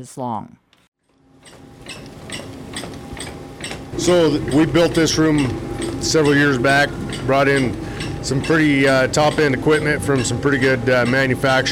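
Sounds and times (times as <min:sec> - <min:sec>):
speech: 0:00.0 - 0:00.6, 0:04.0 - 0:11.6
sausage machine extruding ground meat into casings: 0:01.0 - 0:11.6.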